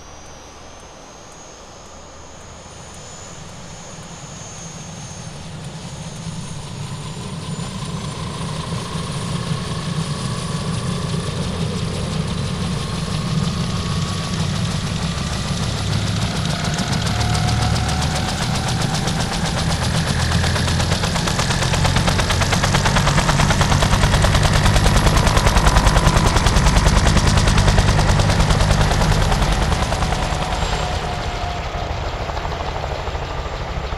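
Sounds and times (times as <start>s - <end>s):
helicopter turbine whine climbing in pitch: 0.0s - 33.9s
grounded helicopter rotor spinning up with steady chopping pulse: 2.5s - 33.9s
deep helicopter engine rumble: 7.2s - 33.9s.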